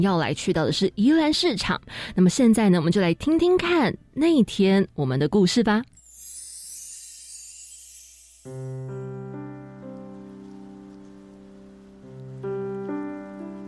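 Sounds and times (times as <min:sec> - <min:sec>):
speech: 0:00.0 - 0:05.9, 0:08.4 - 0:09.0
rain falling in the morning: 0:08.5 - 0:13.6.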